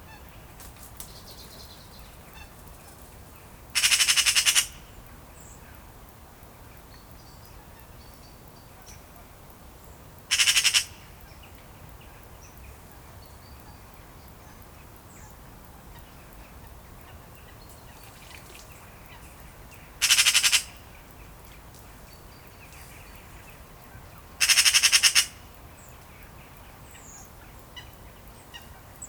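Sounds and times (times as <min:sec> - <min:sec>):
Eurasian magpie Pica pica harsh rattling chatter: 0:03.8 - 0:04.8, 0:10.3 - 0:11.0, 0:20.0 - 0:20.8, 0:24.4 - 0:25.4.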